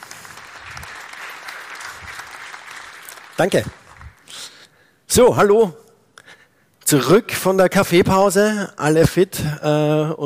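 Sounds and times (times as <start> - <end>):
audience applause: 0.0 - 4.6
speech: 3.4 - 3.8, 5.1 - 5.8, 6.9 - 10.2.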